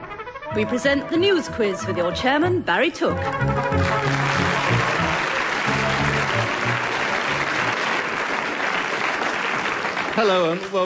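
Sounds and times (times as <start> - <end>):
speech: 0.6 - 4.5, 10.2 - 10.8
studio audience applause at a recorded news quiz: 3.2 - 10.8.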